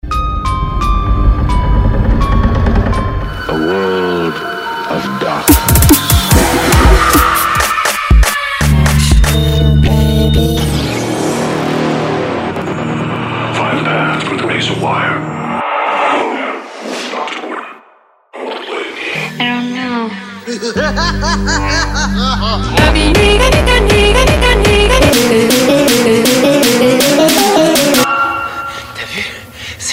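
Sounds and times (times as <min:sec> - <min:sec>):
horror music: 0:00.0 - 0:16.6, 0:19.0 - 0:29.6
laughter: 0:20.5 - 0:22.8.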